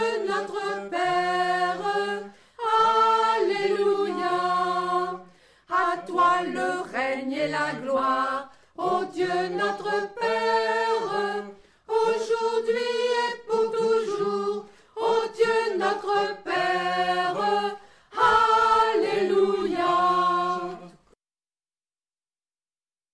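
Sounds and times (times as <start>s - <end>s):
choir with bass voices singing a prayer from Burkina Faso: 0.0s - 21.0s.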